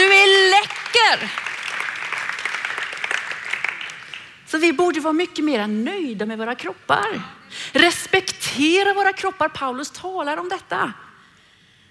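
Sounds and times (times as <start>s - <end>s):
audience applause: 0.0s - 4.4s
speech: 1.1s - 1.4s, 4.6s - 11.1s.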